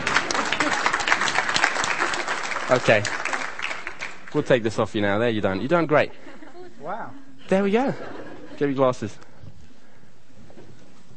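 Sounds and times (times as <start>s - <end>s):
laughter: 0.0s - 2.4s, 6.1s - 8.8s
audience applause for a participant: 0.0s - 4.9s
speech: 2.7s - 3.2s, 4.3s - 9.3s.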